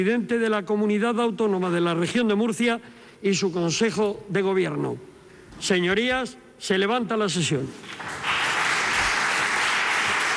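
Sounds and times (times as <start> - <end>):
speech: 0.0 - 8.3
applause from the People's Party benches in the Murcia regional parliament: 7.7 - 10.3.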